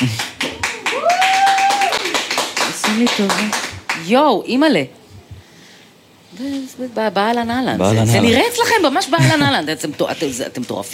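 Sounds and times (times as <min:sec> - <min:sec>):
speech: 0:00.0 - 0:00.3, 0:03.0 - 0:05.0, 0:06.4 - 0:10.9
audience clapping for an army commander: 0:00.0 - 0:04.1.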